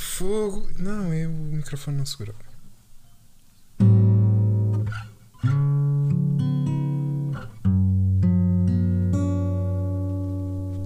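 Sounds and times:
speech: 0.2 - 2.5
guitar jingle: 3.8 - 10.8.

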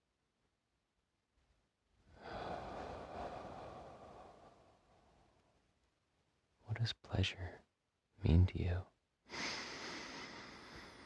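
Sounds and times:
slow deep breath during guided breathing: 2.1 - 5.3, 9.3 - 11.0
speech: 6.8 - 9.4.

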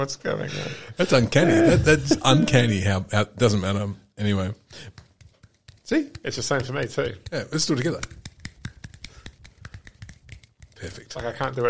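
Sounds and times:
speech: 0.0 - 5.0, 5.9 - 8.2, 10.8 - 11.6
laughter: 1.1 - 2.7
hand clapping: 4.8 - 11.6.

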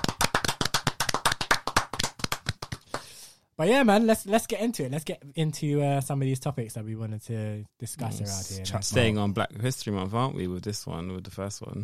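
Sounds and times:
few people applauding: 0.0 - 3.2
speech: 3.6 - 11.8.

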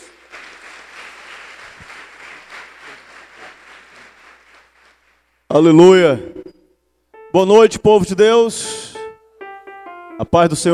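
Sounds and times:
applause: 0.0 - 5.3
speech: 5.5 - 6.3, 7.3 - 8.8, 10.2 - 10.7.

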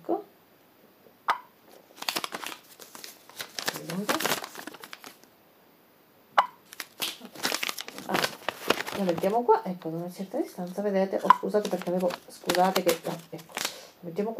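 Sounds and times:
banknote being crinkled near a phone: 1.7 - 5.3, 6.6 - 13.9
speech: 9.0 - 14.3.

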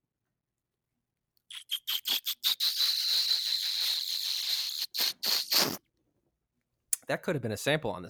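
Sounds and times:
person sipping a drink: 1.5 - 5.8
speech: 7.1 - 8.0.

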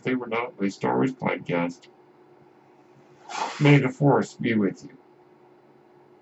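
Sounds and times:
speech: 0.0 - 2.0, 3.3 - 5.0
medical ventilator low mechanical hum: 0.0 - 6.1
medical ventilator whoosh of pushed air: 3.2 - 3.8.

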